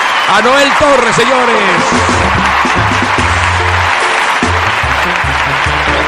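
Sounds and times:
audience applause: 0.0 - 6.0
speech: 0.3 - 2.9
music with bouncing low bass line: 1.8 - 6.0.

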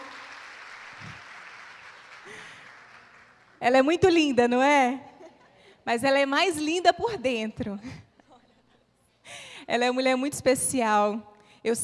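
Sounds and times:
cheers: 0.0 - 1.3
crowd applauding: 0.0 - 3.6
speech: 3.6 - 5.1, 5.8 - 8.0, 9.7 - 11.8.

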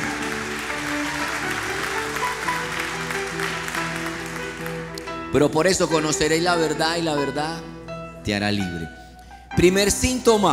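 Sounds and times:
audience applause: 0.0 - 5.2
speech: 5.3 - 9.0, 9.6 - 10.5.

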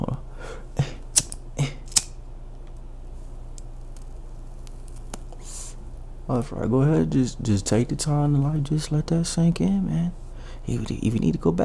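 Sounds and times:
lighter clicking to light a blunt: 1.1 - 2.2
speech: 6.3 - 11.6.

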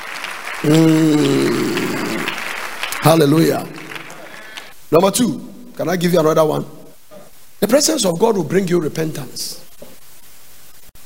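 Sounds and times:
crowd applause: 0.0 - 4.8
speech: 0.6 - 1.6, 3.0 - 3.8, 4.9 - 6.8, 7.6 - 9.6.

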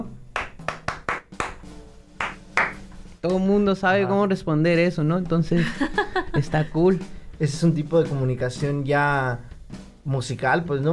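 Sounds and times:
rhythmic hand clapping: 0.0 - 3.0
speech: 3.2 - 10.9
laughter: 5.6 - 6.9.

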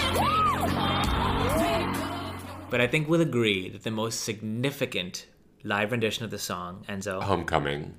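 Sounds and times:
live concert audience cheering wildly after a vocal performance: 0.1 - 2.4
speech: 2.7 - 7.9.

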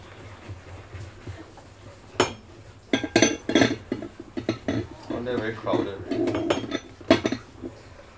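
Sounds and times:
dishes clinking into a drying rack: 2.1 - 8.1
speech: 5.3 - 6.4.

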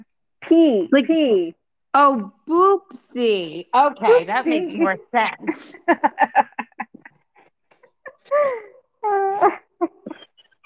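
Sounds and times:
speech: 0.4 - 6.6, 8.3 - 10.0
dog whining to go out: 9.2 - 10.6.

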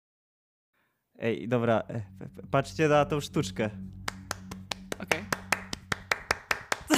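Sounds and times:
speech: 1.2 - 4.0
hand clapping: 4.0 - 6.9.

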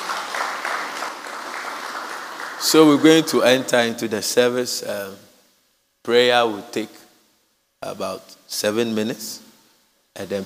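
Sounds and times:
audience clapping: 0.0 - 3.5
speech: 2.7 - 5.3, 6.0 - 7.0, 7.8 - 9.4, 10.2 - 10.4.

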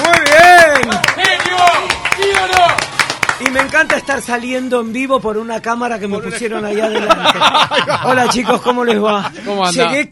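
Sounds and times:
studio audience clapping: 0.0 - 4.5
speech: 3.6 - 10.1
laughter: 6.2 - 9.8.

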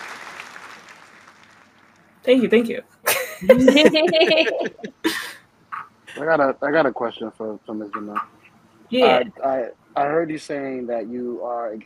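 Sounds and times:
round of applause: 0.0 - 2.1
speech: 2.3 - 5.2, 6.2 - 11.8
laughter: 3.1 - 5.4.

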